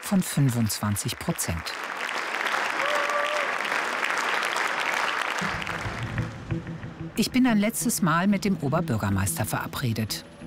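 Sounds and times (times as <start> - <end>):
large audience applause: 0.0 - 6.6
speech: 0.1 - 2.1, 6.6 - 10.4.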